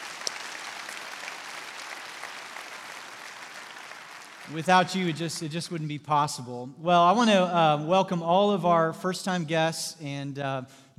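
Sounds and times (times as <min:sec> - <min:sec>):
church-service congregation applauding volunteers: 0:00.0 - 0:05.4
speech: 0:04.5 - 0:10.9.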